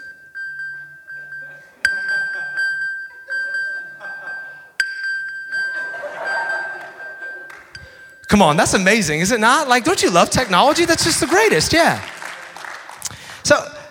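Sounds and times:
lost phone locator sonar ping: 0:00.0 - 0:09.6
laughter: 0:01.4 - 0:04.8, 0:05.6 - 0:08.1, 0:09.4 - 0:13.1
speech: 0:08.3 - 0:12.1.

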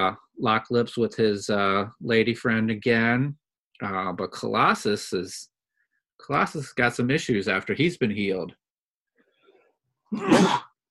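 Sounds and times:
speech: 0:00.0 - 0:05.5, 0:06.2 - 0:08.6, 0:10.1 - 0:10.7
sneeze: 0:10.1 - 0:10.8.

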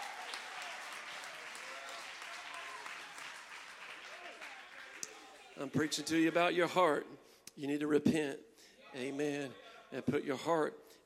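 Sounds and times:
audience clapping: 0:00.0 - 0:06.4
speech: 0:05.6 - 0:10.9.

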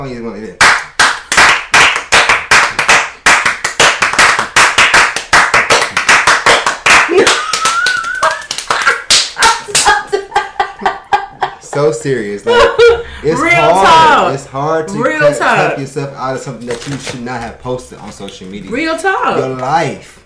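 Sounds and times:
speech: 0:00.0 - 0:00.8, 0:11.8 - 0:20.2
hand clapping: 0:00.6 - 0:10.1
laughter: 0:07.0 - 0:14.3.

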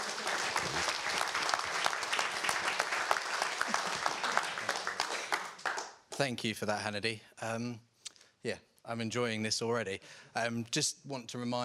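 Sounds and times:
audience applause at an investor-pitching talk: 0:00.0 - 0:06.2
speech: 0:06.2 - 0:11.6.

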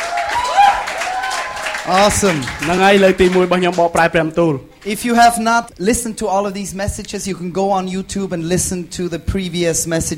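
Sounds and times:
audience applause: 0:00.0 - 0:04.2
raised voices calling out and cheering: 0:00.0 - 0:05.4
speech: 0:01.9 - 0:10.1.

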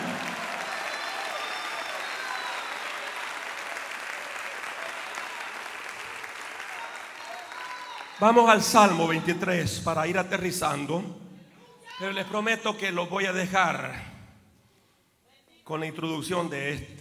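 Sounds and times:
audience applause: 0:00.0 - 0:09.0
speech: 0:08.2 - 0:11.2, 0:12.0 - 0:14.1, 0:15.7 - 0:17.0.

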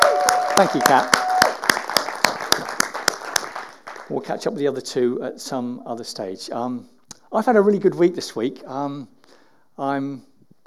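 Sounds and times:
round of applause: 0:00.0 - 0:04.5
speech: 0:00.6 - 0:01.2, 0:04.1 - 0:09.2, 0:09.8 - 0:10.3.

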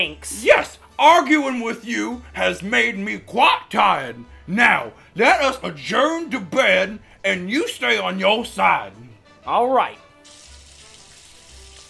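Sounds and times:
speech: 0:00.0 - 0:10.0
shower water running: 0:10.2 - 0:11.8.

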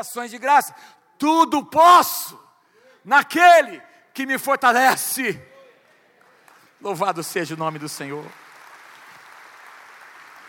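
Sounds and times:
speech: 0:00.0 - 0:02.4, 0:03.0 - 0:05.5, 0:06.8 - 0:08.4
audience applauding: 0:07.6 - 0:10.4.

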